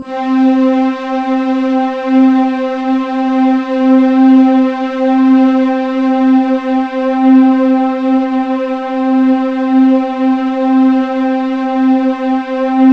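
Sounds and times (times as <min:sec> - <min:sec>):
synth note C2: 0:00.0 - 0:12.9.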